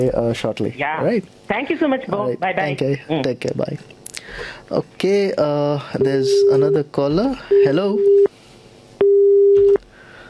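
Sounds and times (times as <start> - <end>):
speech: 0.0 - 8.3
telephone busy signal after a dropped call: 9.0 - 9.8.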